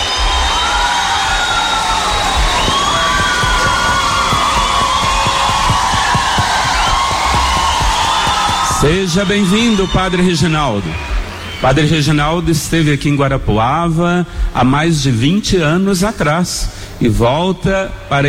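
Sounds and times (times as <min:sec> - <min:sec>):
crowd applauding and cheering: 0:00.0 - 0:12.6
speech: 0:08.8 - 0:18.2.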